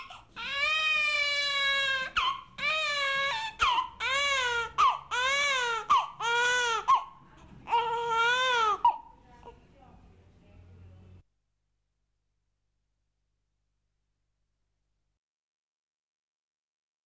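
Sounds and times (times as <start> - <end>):
newborn baby crying: 0.0 - 9.6.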